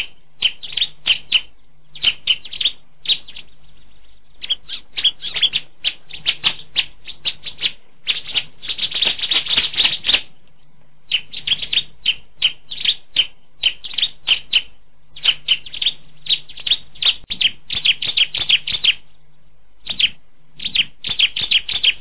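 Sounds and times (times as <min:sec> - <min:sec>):
Bar-winged Prinia song: 0:00.0 - 0:10.4, 0:11.0 - 0:21.9.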